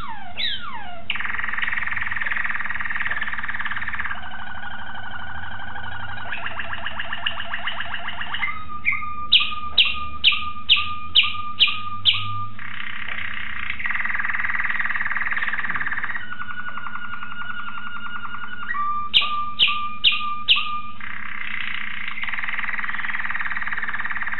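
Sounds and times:
Waterslager canary singing: 0:00.0 - 0:24.3.

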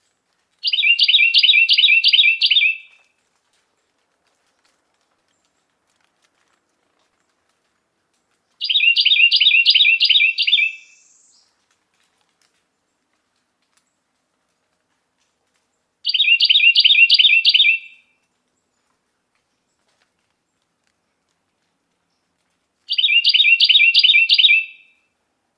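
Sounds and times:
Carolina wren song: 0:00.6 - 0:03.0, 0:08.6 - 0:11.6, 0:16.0 - 0:18.0, 0:22.9 - 0:25.0.

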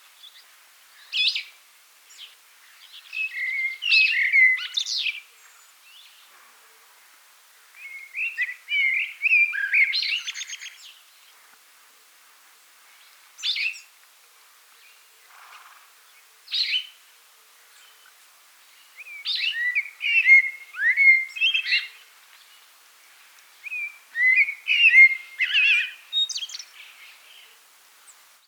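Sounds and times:
blackbird singing: 0:02.1 - 0:05.3, 0:07.8 - 0:11.0, 0:18.7 - 0:22.0, 0:23.6 - 0:27.6.

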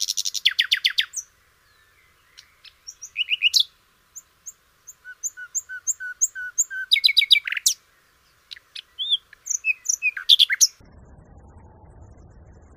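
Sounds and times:
Common nightingale song: 0:00.0 - 0:10.8.

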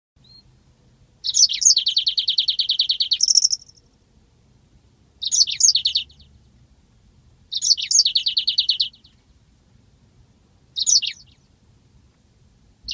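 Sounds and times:
yellow-fronted canary singing: 0:00.2 - 0:00.6, 0:01.2 - 0:04.0, 0:05.2 - 0:06.5, 0:07.5 - 0:09.3, 0:10.7 - 0:11.6.

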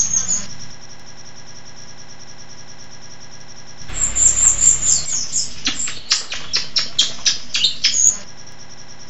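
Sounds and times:
rio rio bird singing: 0:00.0 - 0:00.7, 0:03.9 - 0:08.3.

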